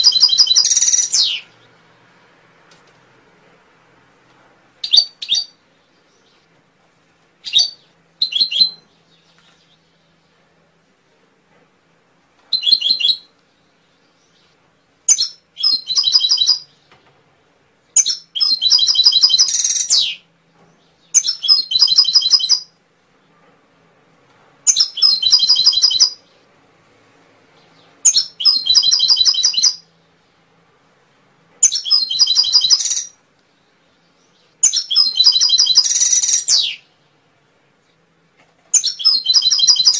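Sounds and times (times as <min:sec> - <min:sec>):
canary singing trills: 0:00.0 - 0:02.0, 0:04.8 - 0:06.5, 0:07.4 - 0:10.3, 0:12.5 - 0:16.9, 0:17.9 - 0:23.3, 0:24.6 - 0:26.5, 0:27.6 - 0:30.3, 0:31.6 - 0:37.0, 0:38.7 - 0:39.9.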